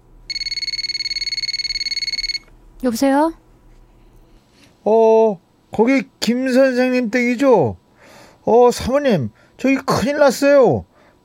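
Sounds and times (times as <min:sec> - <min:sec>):
telephone ringing: 0:00.3 - 0:02.5
speech: 0:02.8 - 0:03.4, 0:04.8 - 0:07.8, 0:08.4 - 0:10.9.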